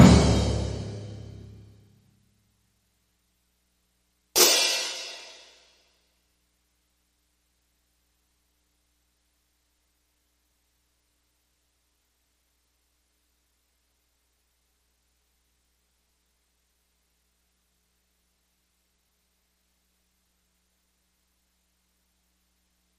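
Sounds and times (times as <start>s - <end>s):
percussion: 0.0s - 1.7s, 4.4s - 5.9s.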